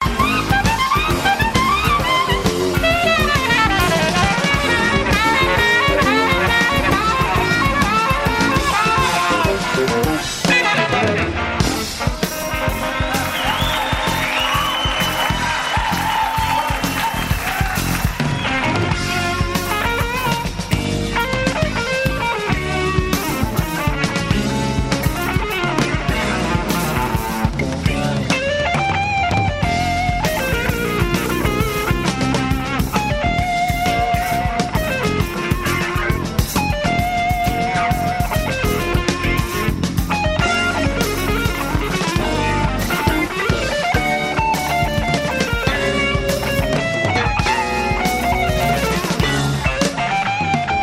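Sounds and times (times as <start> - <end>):
jazz music: 0.0 - 50.8.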